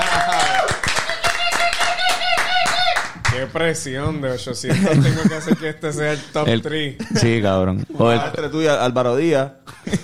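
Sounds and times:
audience applause: 0:00.0 - 0:03.3
speech: 0:03.6 - 0:10.0
laughter: 0:04.6 - 0:08.7, 0:09.7 - 0:10.0.

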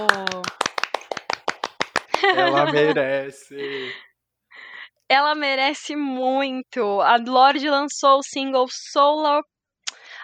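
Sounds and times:
sharp hand claps: 0:00.0 - 0:02.9
laughter: 0:00.0 - 0:04.0
speech: 0:02.3 - 0:04.1, 0:05.1 - 0:09.5.

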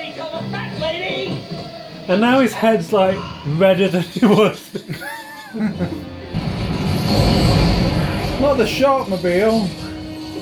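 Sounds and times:
speech: 0:02.1 - 0:06.2, 0:08.4 - 0:09.8
laughter: 0:04.0 - 0:06.2
film explosion: 0:06.3 - 0:10.0.

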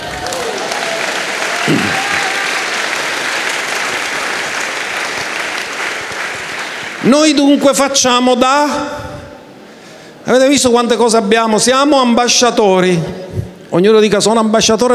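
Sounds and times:
audience applause: 0:00.0 - 0:07.2
speech: 0:01.7 - 0:02.0, 0:07.0 - 0:09.0, 0:10.3 - 0:14.9.

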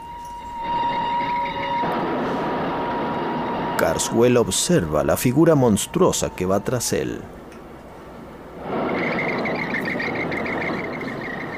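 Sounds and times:
sustained whistle-like tone: 0:00.0 - 0:07.3, 0:08.7 - 0:11.5
steam locomotive passing: 0:00.0 - 0:11.5
hissing roar: 0:00.6 - 0:06.0, 0:08.0 - 0:11.5
speech: 0:03.8 - 0:07.4.

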